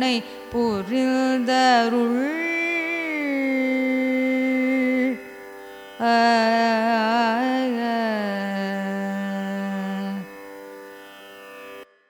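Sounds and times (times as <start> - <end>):
Carnatic raga performance: 0.0 - 12.0.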